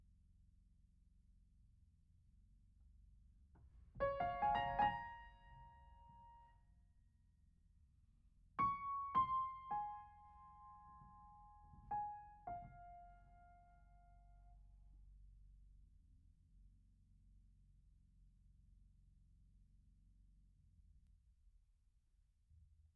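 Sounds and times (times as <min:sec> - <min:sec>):
piano: 0:03.9 - 0:06.7, 0:08.6 - 0:14.8.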